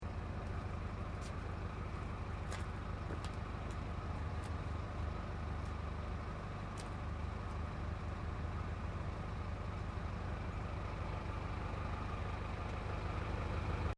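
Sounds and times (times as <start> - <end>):
distant tractor earthmover idling: 0.0 - 13.9.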